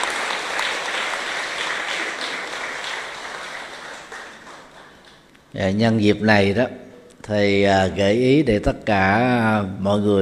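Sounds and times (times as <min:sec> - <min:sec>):
audience applause: 0:00.0 - 0:05.2
speech: 0:05.5 - 0:10.1.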